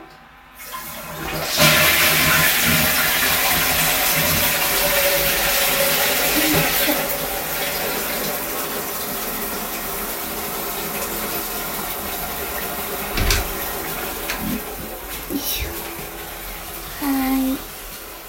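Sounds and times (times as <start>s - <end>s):
person urinating after waking up: 0.7s - 18.2s.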